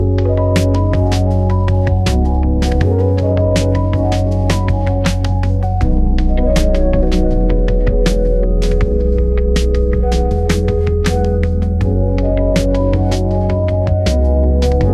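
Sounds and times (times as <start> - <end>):
lo-fi hip hop music: 0.0 - 14.9.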